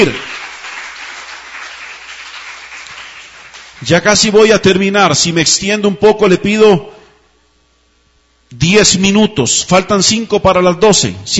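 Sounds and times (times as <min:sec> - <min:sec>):
speech: 0:00.0 - 0:00.3, 0:03.8 - 0:07.0, 0:08.5 - 0:11.3
audience applause: 0:00.0 - 0:03.9.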